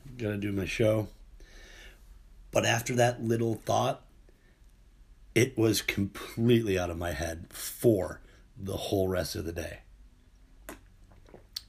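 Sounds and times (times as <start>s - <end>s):
speech: 0.2s - 1.2s, 2.5s - 4.0s, 5.4s - 9.8s
person sipping a warm drink: 10.6s - 11.6s.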